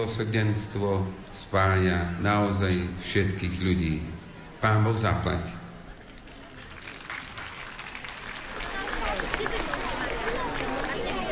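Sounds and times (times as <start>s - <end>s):
speech: 0.0s - 5.6s
audience applause: 6.3s - 11.3s.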